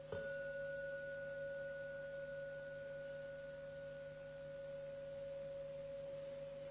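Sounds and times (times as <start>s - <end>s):
meditation bell ringing: 0.1s - 6.6s.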